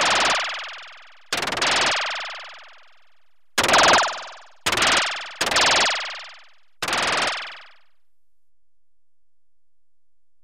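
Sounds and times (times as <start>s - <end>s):
electronically generated rapid machine gun bursts: 0.0s - 2.8s, 3.6s - 7.8s.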